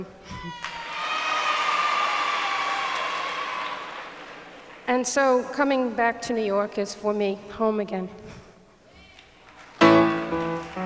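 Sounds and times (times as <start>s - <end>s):
speech: 0.0s - 0.8s, 4.9s - 8.4s
cheers and whoops: 0.4s - 4.2s
audience applause: 0.5s - 4.9s, 9.5s - 10.8s.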